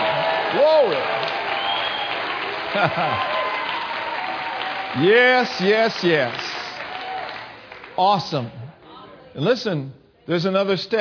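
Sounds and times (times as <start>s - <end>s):
audience applauding: 0.0s - 8.7s
speech: 0.5s - 1.2s, 2.8s - 3.3s, 4.9s - 6.5s, 8.0s - 8.6s, 9.4s - 11.0s
laughter: 2.6s - 3.5s.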